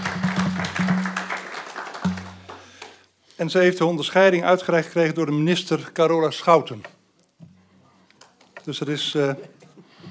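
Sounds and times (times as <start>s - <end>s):
audience applause: 0.0s - 3.0s
speech: 3.4s - 7.0s, 8.7s - 9.6s.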